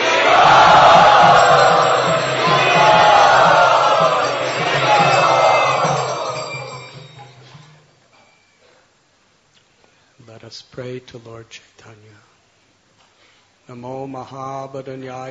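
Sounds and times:
crowd chanting in welcome at a Gaur Purnima gathering: 0:00.0 - 0:07.5
speech: 0:10.8 - 0:12.3, 0:13.7 - 0:15.2.

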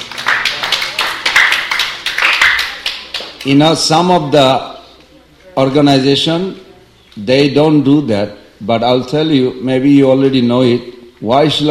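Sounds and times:
group clapping hands: 0:00.0 - 0:03.6
speech: 0:03.4 - 0:04.7, 0:05.6 - 0:06.6, 0:07.2 - 0:11.7.

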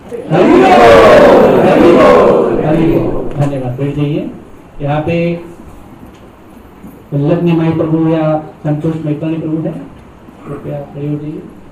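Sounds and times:
speech: 0:00.1 - 0:00.9, 0:02.8 - 0:05.5, 0:07.1 - 0:11.6
crowd loudly chanting Haridhvani in welcome at a gathering: 0:00.3 - 0:03.4.

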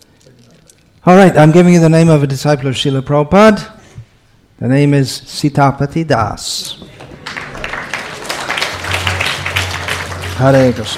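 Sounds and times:
speech: 0:01.0 - 0:03.8, 0:04.6 - 0:07.1, 0:10.4 - 0:10.9
round of applause: 0:06.8 - 0:10.9.

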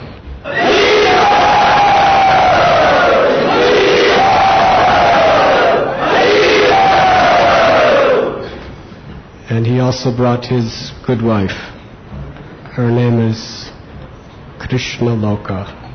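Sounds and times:
crowd at a temple gathering cheering to welcome a guest speaker: 0:00.5 - 0:08.6
speech: 0:09.9 - 0:11.7, 0:12.8 - 0:13.6, 0:14.7 - 0:15.8.

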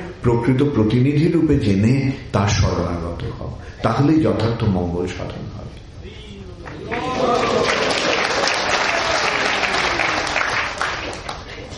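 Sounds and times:
speech: 0:00.2 - 0:05.8
audience at a religious discourse clapping: 0:06.6 - 0:11.7.

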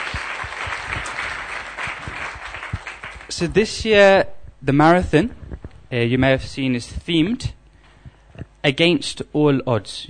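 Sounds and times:
audience round of applause: 0:00.0 - 0:03.4
speech: 0:03.3 - 0:07.6, 0:08.6 - 0:10.0.

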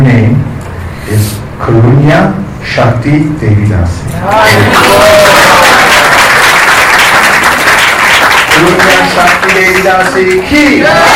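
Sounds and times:
speech: 0:01.6 - 0:05.6, 0:08.6 - 0:11.1
audience applause: 0:04.3 - 0:11.1.

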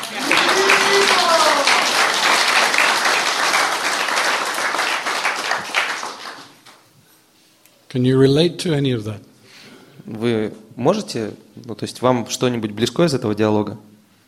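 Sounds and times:
audience clapping: 0:00.0 - 0:06.9
speech: 0:07.9 - 0:09.3, 0:10.1 - 0:13.9.

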